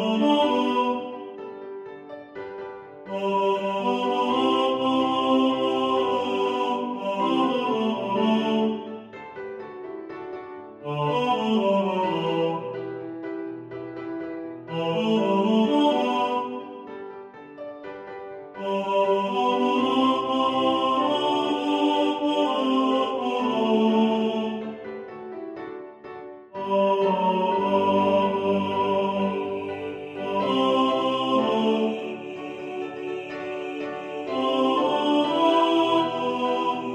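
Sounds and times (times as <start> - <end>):
tenor singing in the foreground: 0.0 - 1.4, 3.1 - 9.1, 10.8 - 13.2, 14.7 - 16.9, 18.6 - 24.9, 26.6 - 36.9
piano: 0.0 - 36.9.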